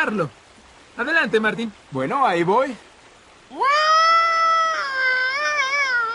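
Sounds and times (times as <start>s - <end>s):
speech: 0.0s - 0.4s, 1.0s - 2.9s, 3.5s - 3.8s
person imitating a moose bellow: 3.5s - 6.1s.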